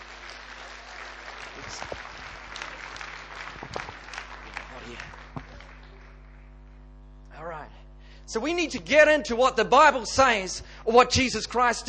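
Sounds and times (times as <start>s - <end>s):
audience clapping: 0.0s - 6.8s
speech: 8.3s - 11.8s.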